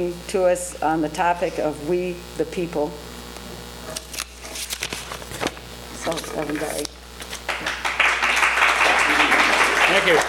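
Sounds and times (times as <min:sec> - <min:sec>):
speech: 0:00.0 - 0:03.1, 0:06.1 - 0:06.9, 0:10.0 - 0:10.2
audience applause: 0:07.5 - 0:10.2.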